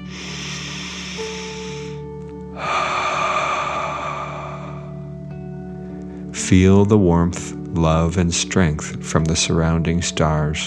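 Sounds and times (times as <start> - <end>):
deep breath in and out: 0.0 - 6.3
speech: 6.5 - 10.6.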